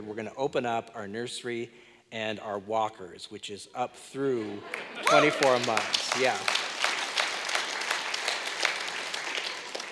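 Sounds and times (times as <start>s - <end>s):
speech: 0.1s - 6.6s
audience applause: 4.7s - 9.9s.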